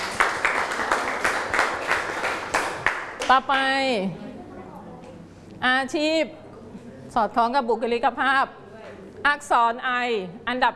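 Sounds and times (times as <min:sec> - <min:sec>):
classroom children clapping: 0:00.0 - 0:03.4
speech: 0:03.3 - 0:04.3, 0:05.6 - 0:06.4, 0:07.1 - 0:08.6, 0:09.2 - 0:10.7.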